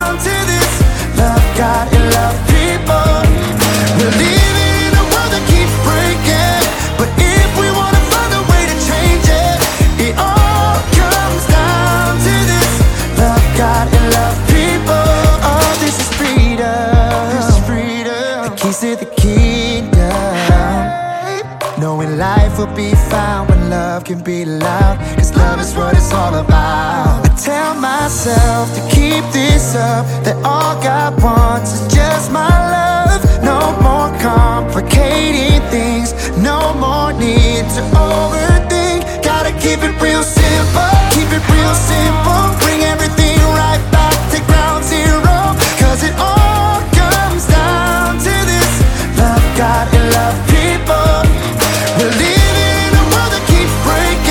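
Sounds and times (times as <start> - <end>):
piano: 0.0 - 54.2.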